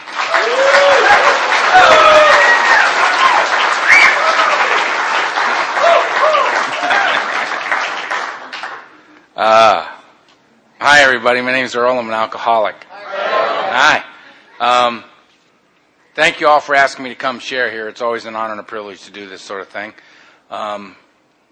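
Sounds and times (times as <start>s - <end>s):
audience at a recovery meeting clapping to welcome a speaker: 0.0s - 9.3s
speech: 11.2s - 12.9s, 13.8s - 15.1s, 16.2s - 21.0s.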